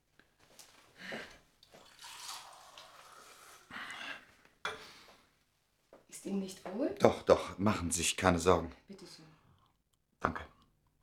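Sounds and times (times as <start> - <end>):
water poured into a glass: 1.6 - 3.7
speech: 6.3 - 9.2.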